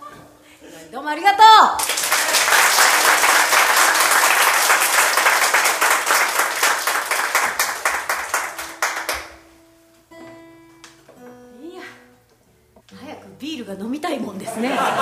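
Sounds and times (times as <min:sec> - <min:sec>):
speech: 0:00.8 - 0:02.0, 0:13.8 - 0:15.0
audience applause: 0:01.8 - 0:09.4
laughter: 0:14.4 - 0:15.0.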